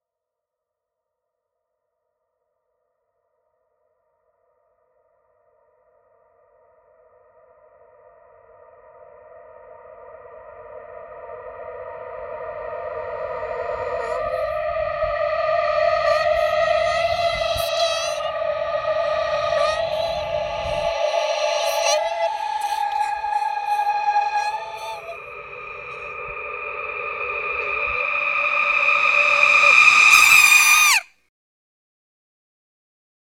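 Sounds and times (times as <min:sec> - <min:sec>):
reverse reverb swell: 0:11.3 - 0:31.0.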